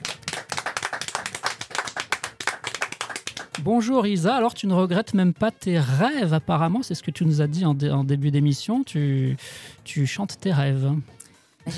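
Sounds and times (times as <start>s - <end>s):
studio audience applause: 0.0s - 3.6s
speech: 3.6s - 11.7s.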